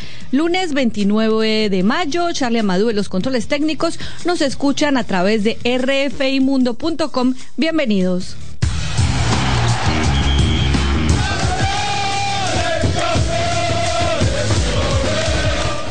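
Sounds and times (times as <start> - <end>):
speech: 0.3 - 8.5
Paris Saint-Germain players celebrating French league title, chanting in Spanish: 8.7 - 15.8.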